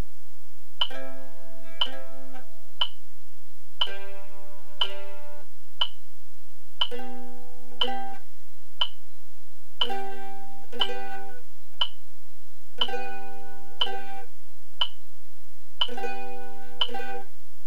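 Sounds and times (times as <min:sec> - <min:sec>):
mandolin chords: 0:00.8 - 0:03.0, 0:03.8 - 0:05.9, 0:06.7 - 0:08.4, 0:09.8 - 0:12.1, 0:12.8 - 0:14.4, 0:15.8 - 0:17.4.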